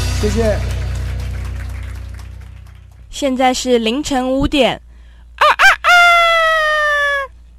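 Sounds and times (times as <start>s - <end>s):
speech: 0.2s - 0.7s, 3.2s - 4.8s
rooster crowing at dawn: 5.4s - 7.3s.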